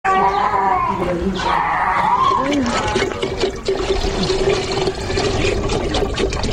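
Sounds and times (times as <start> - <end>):
speech: 0.9 - 3.6
water poured from a can into a pot for cooking in an African refugee camp: 2.4 - 6.5.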